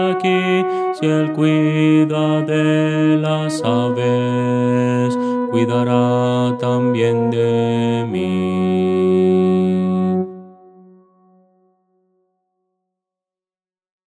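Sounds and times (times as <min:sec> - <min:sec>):
contralto singing Christian hymns: 0:00.0 - 0:10.4.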